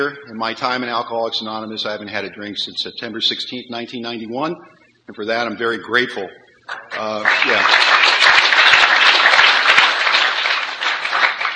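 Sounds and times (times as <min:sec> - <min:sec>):
speech: 0:00.0 - 0:08.0
people applauding: 0:06.7 - 0:11.5.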